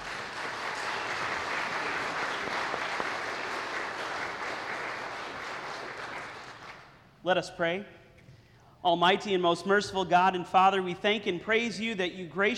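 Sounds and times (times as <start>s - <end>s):
audience round of applause: 0.0s - 7.0s
speech: 7.2s - 8.0s, 8.8s - 12.5s.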